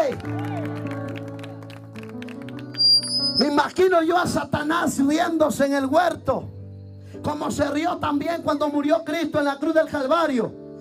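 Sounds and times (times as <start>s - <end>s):
audience clapping in rhythm: 0.0s - 3.1s
speech: 0.1s - 0.6s, 3.4s - 6.5s, 7.2s - 10.6s.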